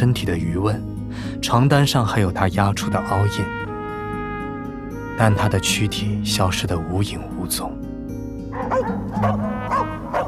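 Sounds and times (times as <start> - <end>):
speech: 0.0 - 3.6, 5.2 - 7.9, 8.6 - 9.5
wolfhound barking: 8.5 - 10.2.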